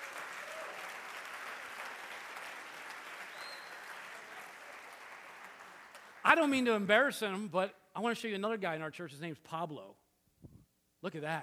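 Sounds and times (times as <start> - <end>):
audience hand clapping: 0.0 - 6.2
speech: 6.3 - 10.0, 11.0 - 11.4.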